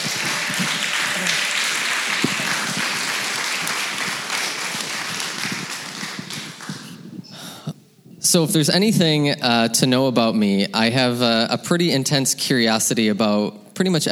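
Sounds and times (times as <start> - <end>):
audience clapping: 0.0 - 7.2
speech: 8.3 - 14.0.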